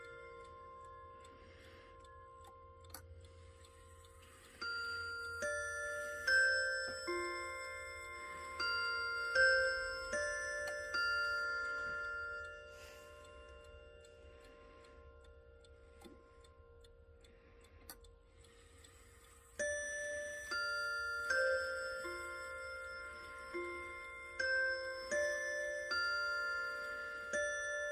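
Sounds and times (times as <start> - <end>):
table clock chime: 0.0 - 27.9.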